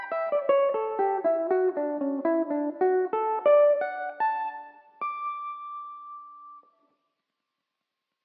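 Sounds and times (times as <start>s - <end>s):
Irish mandolin playing in D major: 0.0s - 4.0s.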